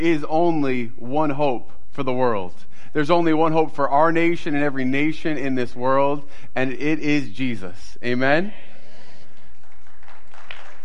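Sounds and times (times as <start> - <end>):
speech: 0.0 - 8.7
crowd applauding: 9.3 - 10.8.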